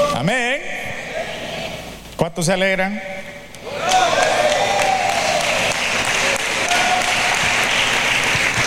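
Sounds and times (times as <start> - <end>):
speech: 0.2 - 0.5, 2.2 - 3.1
audience applauding: 3.8 - 8.6.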